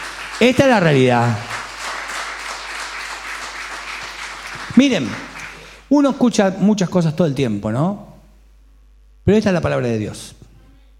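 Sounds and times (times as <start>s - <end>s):
audience applause: 0.0s - 5.8s
speech: 0.4s - 1.5s, 4.8s - 5.3s, 5.9s - 8.1s, 9.3s - 10.4s.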